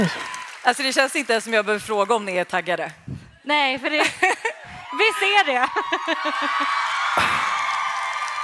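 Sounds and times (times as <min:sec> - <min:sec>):
sleepy live audience weak cheer with whoops: 0:00.0 - 0:00.8, 0:04.6 - 0:08.4
speech: 0:00.0 - 0:07.4
laughter: 0:03.9 - 0:04.8, 0:05.4 - 0:07.7.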